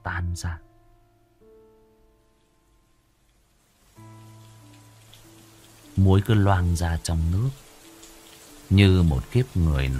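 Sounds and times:
speech: 0.4s - 0.7s, 6.0s - 7.6s, 8.7s - 9.9s
heavy rain pouring onto piles of salt: 3.6s - 9.9s.

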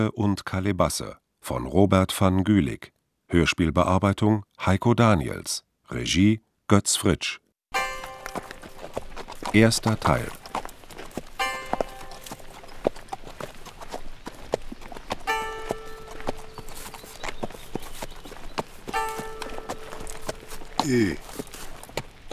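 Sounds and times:
speech: 0.0s - 7.4s, 9.5s - 10.4s, 20.9s - 21.2s
horse hooves clip-clopping: 7.8s - 22.3s.

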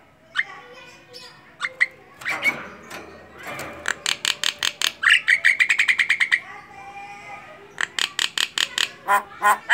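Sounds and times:
Javan myna singing with clicks and chattering notes: 1.6s - 6.4s, 7.7s - 9.6s.

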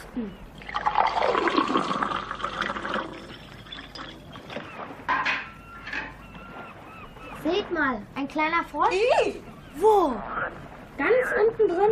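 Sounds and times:
speech: 0.2s - 0.5s, 7.9s - 11.9s
drinking water pouring into a container: 0.6s - 4.4s.

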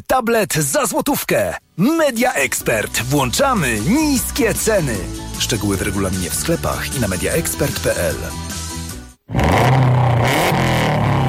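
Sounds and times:
speech: 0.1s - 8.5s
280-horsepower rally car engine revving: 9.3s - 11.2s.

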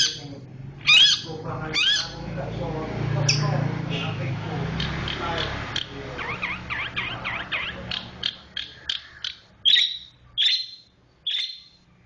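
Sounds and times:
oriental magpie-robin singing: 0.0s - 2.3s, 3.2s - 4.2s, 4.8s - 11.8s.

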